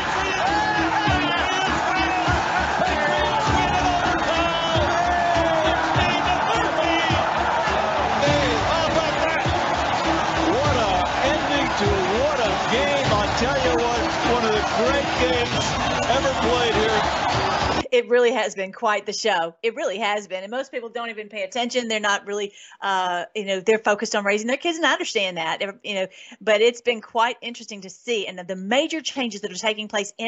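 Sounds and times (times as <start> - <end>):
whoops and shouts: 0.0 - 11.1
football crowd cheering at kickoff: 0.0 - 17.9
speech: 18.0 - 30.2.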